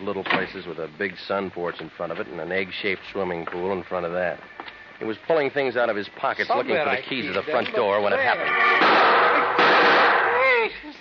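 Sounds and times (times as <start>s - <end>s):
speech: 0.0s - 10.8s
ringing whine: 2.0s - 10.4s
gunshots fired at a man outside a small house's front door: 8.8s - 10.4s.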